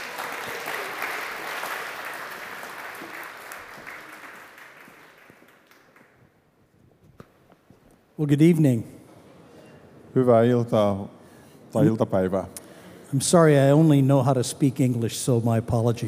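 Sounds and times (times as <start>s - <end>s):
audience applause: 0.0s - 6.4s
speech: 8.2s - 8.9s, 10.2s - 16.0s.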